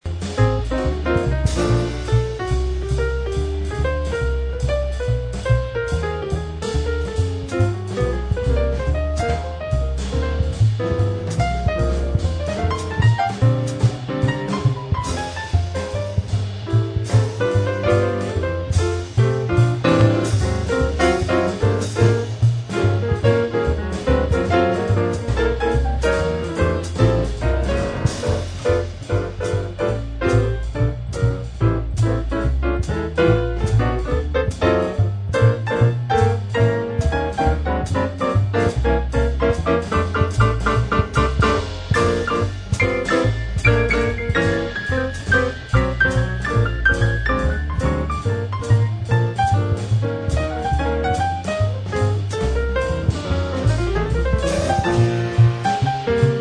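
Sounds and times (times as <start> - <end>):
jazz piano improvisation: 0.0 - 56.4.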